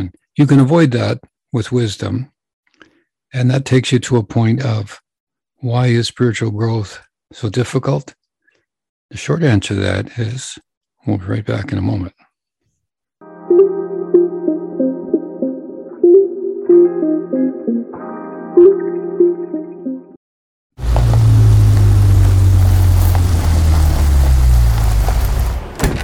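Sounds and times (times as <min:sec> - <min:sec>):
speech: 0:00.0 - 0:02.3, 0:03.3 - 0:05.0, 0:05.6 - 0:08.2, 0:09.1 - 0:12.2
music: 0:13.2 - 0:20.2
car pulling over and stopping: 0:20.8 - 0:26.0.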